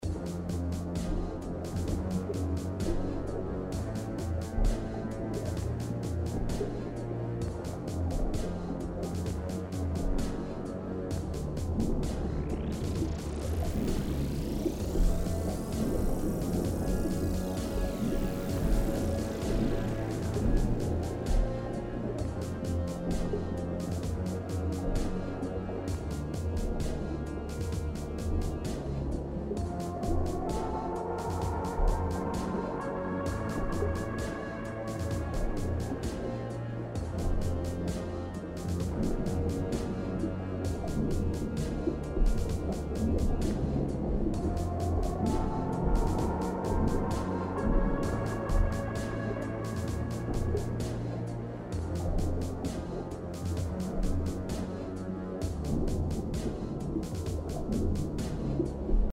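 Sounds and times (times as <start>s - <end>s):
ambient music: 0.0s - 59.1s.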